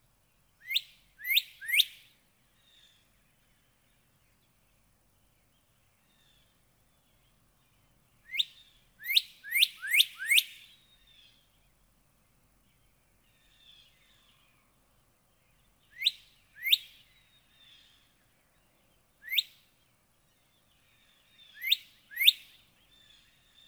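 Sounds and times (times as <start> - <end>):
northern cardinal song: 0.6 - 2.0, 8.3 - 10.8, 15.9 - 17.0, 19.2 - 19.6, 21.4 - 23.0.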